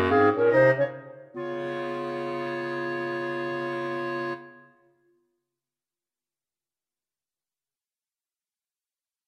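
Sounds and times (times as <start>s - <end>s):
jazz clarinet quartet: 0.0s - 4.6s.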